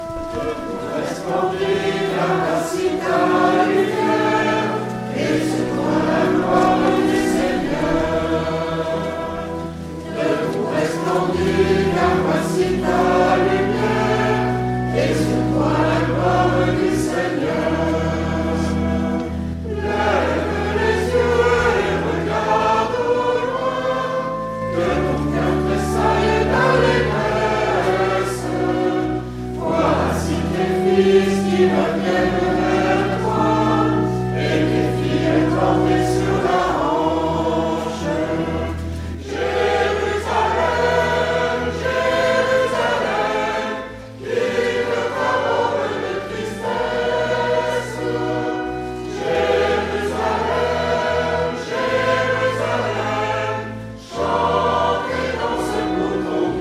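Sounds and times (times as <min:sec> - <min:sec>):
entrance chant: 0:00.0 - 0:56.5.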